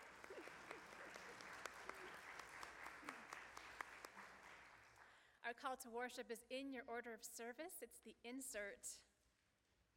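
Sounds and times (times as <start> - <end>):
audience applauding: 0.0 - 5.1
speech: 5.5 - 9.1.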